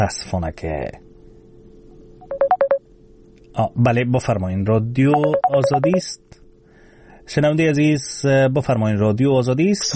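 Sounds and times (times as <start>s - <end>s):
speech: 0.0s - 1.0s, 3.6s - 6.3s, 7.3s - 9.9s
telephone keypad tones on a radio phone-in line: 2.2s - 2.8s, 5.2s - 6.1s.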